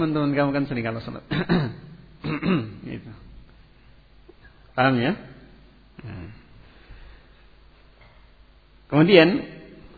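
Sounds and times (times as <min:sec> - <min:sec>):
speech: 0:00.0 - 0:03.2, 0:04.8 - 0:05.3, 0:06.0 - 0:06.4, 0:08.9 - 0:09.6
person clearing their throat: 0:01.3 - 0:02.8, 0:06.0 - 0:06.6.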